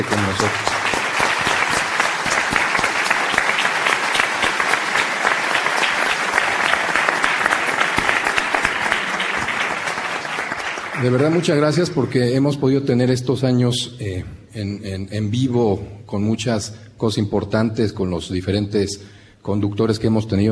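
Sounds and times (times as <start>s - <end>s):
speech: 0.0s - 0.8s, 11.0s - 20.5s
audience applause: 0.0s - 12.1s.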